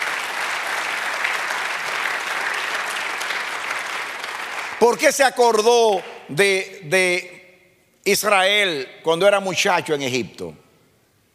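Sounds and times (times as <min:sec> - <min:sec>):
audience applause: 0:00.0 - 0:05.0
speech: 0:04.8 - 0:07.4, 0:08.0 - 0:10.6.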